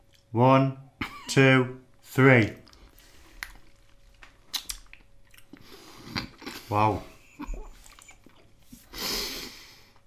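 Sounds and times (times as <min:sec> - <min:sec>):
speech: 0:00.3 - 0:02.6, 0:06.7 - 0:07.1
crunchy bites: 0:02.6 - 0:06.5
several people chewing sweets: 0:02.6 - 0:10.0.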